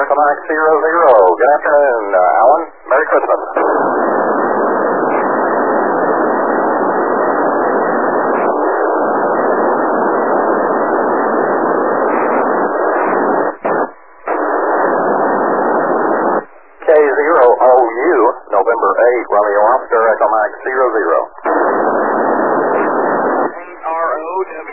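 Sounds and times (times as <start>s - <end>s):
speech: 0.0s - 4.2s, 19.0s - 21.3s
amateur radio transmission static hiss: 0.0s - 24.7s.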